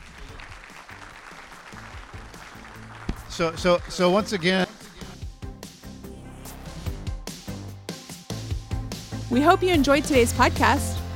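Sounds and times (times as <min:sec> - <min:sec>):
applause: 0:00.0 - 0:05.2
speech: 0:03.4 - 0:04.7, 0:09.4 - 0:11.0.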